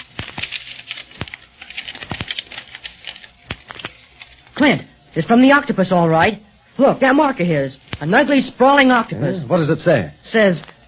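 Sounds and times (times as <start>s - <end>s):
paper rustling as it is untied from a rock: 0.0s - 4.6s
speech: 4.6s - 10.7s.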